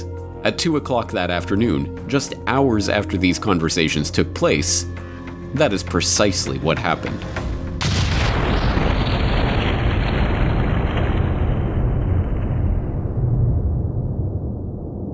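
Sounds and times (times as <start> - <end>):
speech: 0.4 - 7.4
sustained roaring rumble: 7.4 - 15.1
torpedo explosion sound effect: 7.5 - 15.1.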